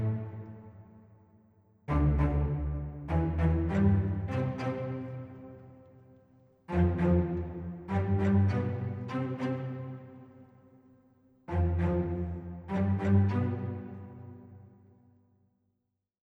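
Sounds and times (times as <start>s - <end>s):
light staccato cellos at 100 bpm: 0.0s - 0.6s, 1.9s - 5.8s, 6.7s - 10.3s, 11.5s - 14.6s.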